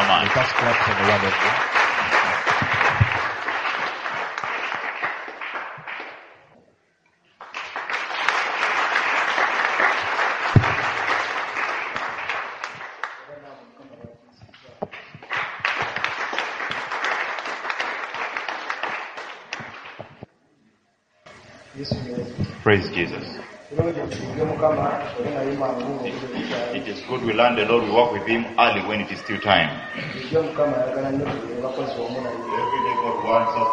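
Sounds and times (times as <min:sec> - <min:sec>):
audience clapping: 0:00.0 - 0:06.5, 0:07.3 - 0:13.4, 0:14.5 - 0:20.3, 0:32.6 - 0:33.7
speech: 0:00.2 - 0:02.6, 0:22.7 - 0:33.7.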